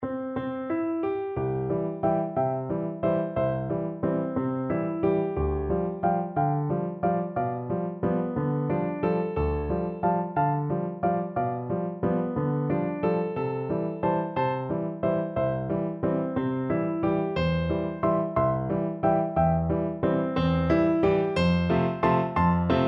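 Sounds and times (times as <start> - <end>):
piano duet: 0.0 - 22.8.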